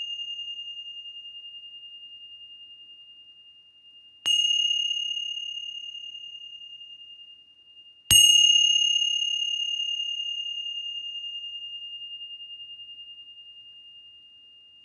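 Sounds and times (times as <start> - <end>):
Tibetan singing bowls: 4.3 - 14.6.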